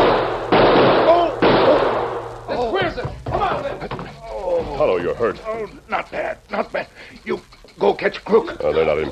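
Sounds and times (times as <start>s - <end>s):
gunshots: 0.0s - 2.7s
speech: 4.8s - 9.1s.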